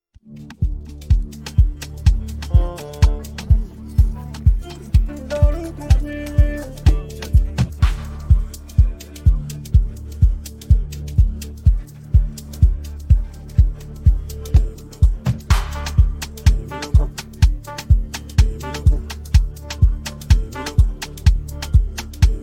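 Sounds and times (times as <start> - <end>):
instrumental music: 0.3 - 22.4.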